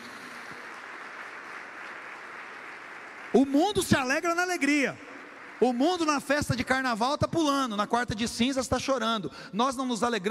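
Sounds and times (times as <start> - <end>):
congregation applauding: 0.0 - 7.0
speech: 3.3 - 10.2.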